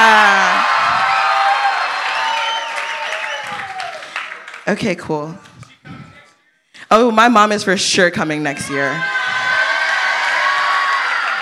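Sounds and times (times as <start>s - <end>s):
crowd cheering: 0.0s - 4.8s, 8.3s - 11.4s
speech: 4.7s - 6.0s, 6.9s - 9.4s.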